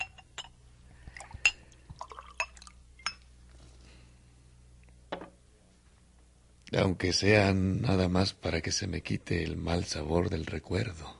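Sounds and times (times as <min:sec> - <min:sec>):
glass clinking: 0:00.0 - 0:03.3
drink pouring into a glass: 0:01.2 - 0:02.8
speech: 0:06.7 - 0:11.1.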